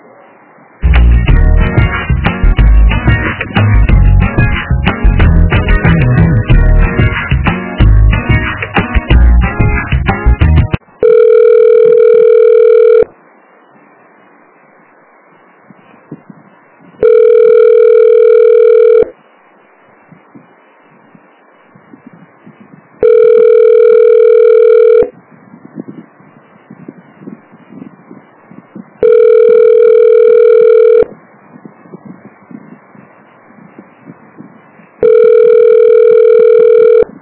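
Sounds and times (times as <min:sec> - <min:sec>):
telephone hold music: 0:00.8 - 0:10.8
telephone ringback tone during a call transfer: 0:11.0 - 0:13.1, 0:17.0 - 0:19.1, 0:23.0 - 0:25.1, 0:29.0 - 0:31.1, 0:35.0 - 0:37.1.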